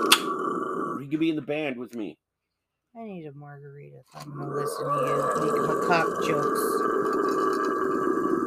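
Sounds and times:
speech: 1.1s - 2.2s, 2.9s - 8.4s
howler monkey roaring: 4.3s - 8.4s.

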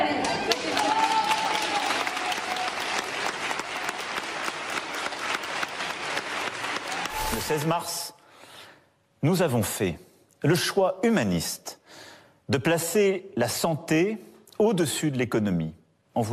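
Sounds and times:
sustained applause from a sizeable crowd: 0.2s - 7.7s
speech: 7.5s - 8.2s, 9.2s - 16.3s.

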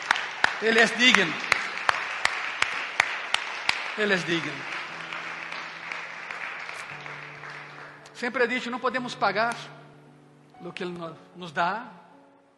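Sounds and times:
audience applauding: 0.0s - 8.8s
speech: 0.6s - 1.5s, 4.0s - 4.7s, 8.2s - 9.8s, 10.6s - 12.0s.

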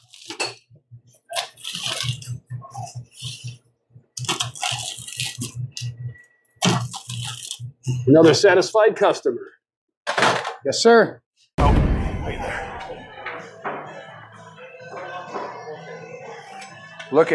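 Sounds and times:
pizza crust crunching: 1.2s - 2.4s, 4.2s - 5.5s, 6.6s - 7.6s
speech: 8.0s - 9.6s, 10.6s - 11.8s, 17.1s - 17.3s.

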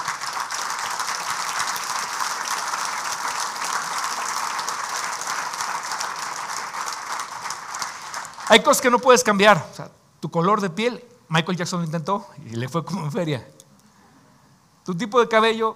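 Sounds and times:
audience applauding: 0.0s - 9.0s
speech: 8.5s - 13.6s, 14.9s - 15.7s.

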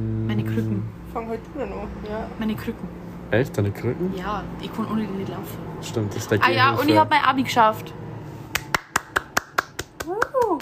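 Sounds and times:
speech: 0.4s - 8.0s
sharp hand claps: 8.5s - 10.5s.

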